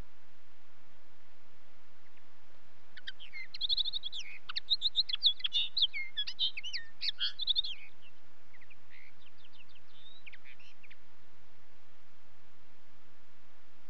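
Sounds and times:
common linnet twittering song: 0:02.9 - 0:11.1.

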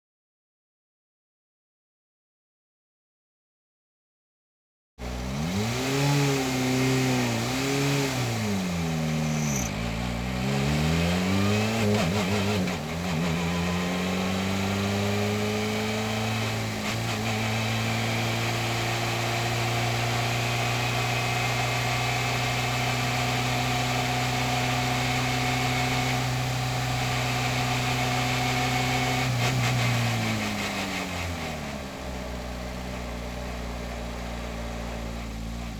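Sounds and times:
2016 Ford Fiesta WRC rally car engine recorded onboard while driving: 0:05.0 - 0:35.7.

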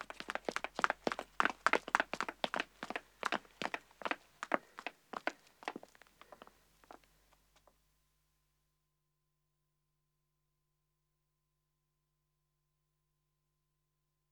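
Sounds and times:
man and woman running footsteps on pavement: 0:00.0 - 0:07.1.

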